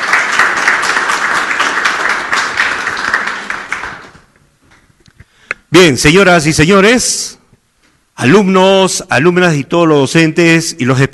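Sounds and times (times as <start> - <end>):
audience applause: 0.0 - 4.3
speech: 5.8 - 7.4, 8.2 - 11.1.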